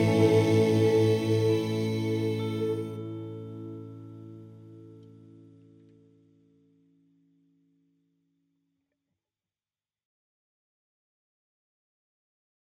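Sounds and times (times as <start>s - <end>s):
Christmas song in Ukrainian: 0.0s - 5.5s.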